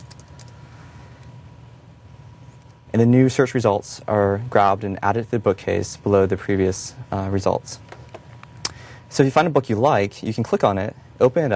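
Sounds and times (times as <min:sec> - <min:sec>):
keyboard typing into a search box: 0:00.0 - 0:00.5
low steady hum: 0:00.0 - 0:11.5
speech: 0:02.9 - 0:08.0, 0:09.1 - 0:11.5.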